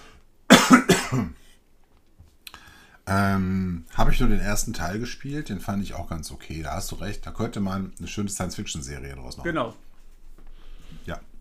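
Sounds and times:
person clearing throat: 0.5s - 1.4s
speech: 1.1s - 1.4s, 3.1s - 9.8s, 11.1s - 11.3s.

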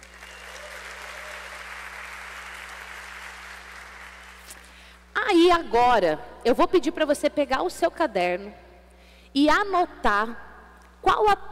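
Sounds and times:
audience applause: 0.0s - 4.5s
speech: 5.3s - 8.6s, 9.3s - 11.4s.

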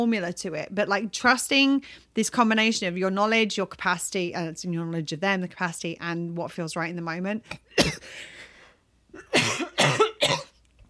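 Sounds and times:
speech: 0.0s - 8.4s
person coughing after a blueberry from a smoothie went down the wrong way: 7.6s - 8.4s, 9.2s - 10.6s.

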